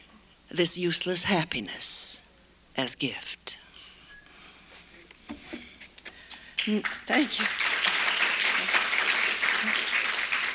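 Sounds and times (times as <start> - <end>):
speech: 0.5 - 2.2, 2.8 - 3.6, 6.6 - 7.6
audience clapping after a poem: 6.6 - 10.5.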